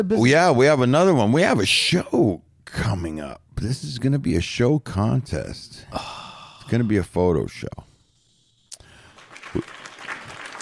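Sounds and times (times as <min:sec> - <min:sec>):
speech: 0:00.0 - 0:07.9, 0:09.5 - 0:09.8
crowd applause: 0:09.0 - 0:10.6.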